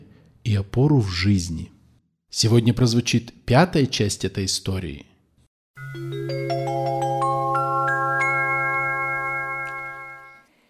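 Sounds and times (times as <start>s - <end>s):
speech: 0.5s - 5.1s
soft ringing of a small bell: 5.8s - 10.5s.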